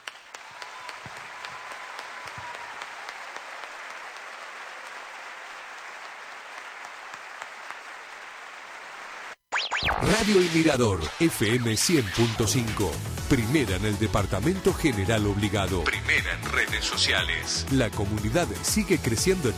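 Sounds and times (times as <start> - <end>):
audience applause: 0.0 - 9.4
speech: 9.9 - 19.5.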